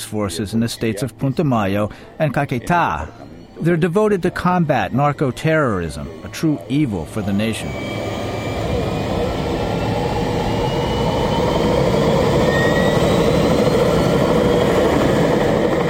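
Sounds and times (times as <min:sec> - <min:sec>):
speech: 0:00.1 - 0:08.3
aircraft engine in flight: 0:03.0 - 0:15.8.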